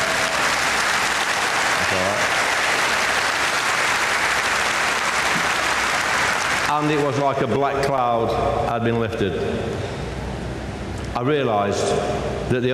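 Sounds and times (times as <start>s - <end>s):
audience applause: 0.0s - 7.2s
speech: 6.8s - 10.0s, 11.2s - 12.7s.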